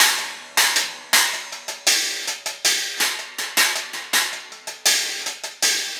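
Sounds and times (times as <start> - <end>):
cymbal: 0.0 - 5.9
hi-hat: 0.0 - 5.9.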